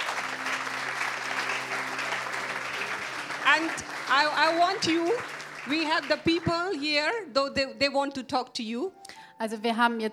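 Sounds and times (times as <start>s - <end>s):
audience clapping hands: 0.0s - 6.9s
speech: 3.6s - 10.1s.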